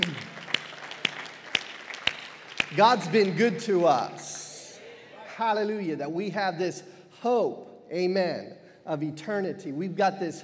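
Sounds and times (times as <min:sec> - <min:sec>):
audience hand clapping: 0:00.0 - 0:04.4
speech: 0:02.7 - 0:04.4, 0:05.4 - 0:10.4.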